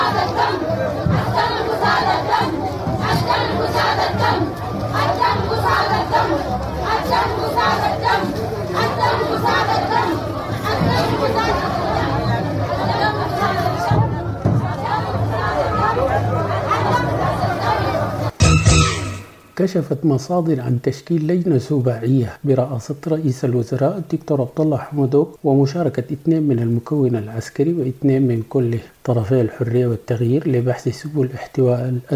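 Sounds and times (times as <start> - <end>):
large crowd chanting slogans outside the North Darfur governor's house: 0.0 - 19.6
speech: 19.6 - 32.1.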